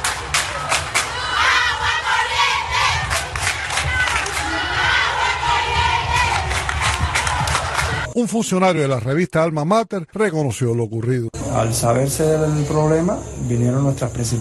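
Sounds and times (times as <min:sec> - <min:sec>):
clapping: 0:00.0 - 0:01.1, 0:03.1 - 0:04.5, 0:06.2 - 0:08.0
students of the University of Camagüey shouting and chanting in protest: 0:00.3 - 0:08.1
speech: 0:08.2 - 0:14.3.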